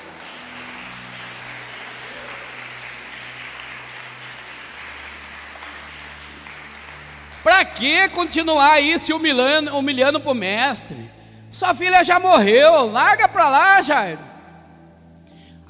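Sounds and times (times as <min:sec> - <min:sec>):
audience applause: 0:00.0 - 0:08.5
speech: 0:07.4 - 0:14.3.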